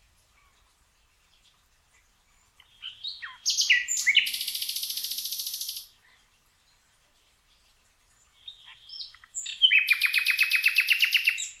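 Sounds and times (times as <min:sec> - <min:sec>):
Luscinia megarhynchos singing: 0:02.6 - 0:06.0, 0:07.5 - 0:11.5.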